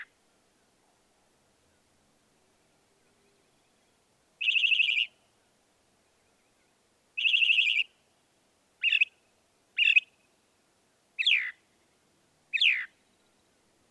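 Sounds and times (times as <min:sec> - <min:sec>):
Northern mockingbird singing: 0:04.4 - 0:05.1, 0:07.2 - 0:07.9, 0:08.8 - 0:09.1, 0:09.8 - 0:10.1, 0:11.2 - 0:11.5, 0:12.5 - 0:13.2.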